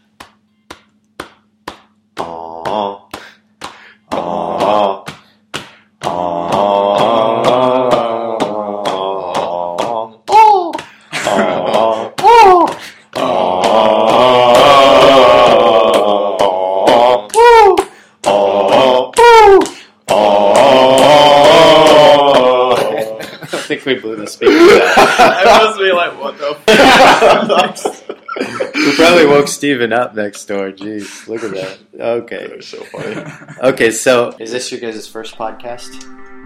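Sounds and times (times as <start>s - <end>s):
men chanting a group ritual chant: 2.2s - 3.4s, 4.0s - 5.2s, 6.0s - 10.4s, 11.1s - 29.6s
speech: 2.7s - 3.0s, 23.8s - 27.8s, 29.0s - 36.3s
laughter: 11.1s - 12.2s, 22.3s - 29.6s, 32.7s - 33.8s.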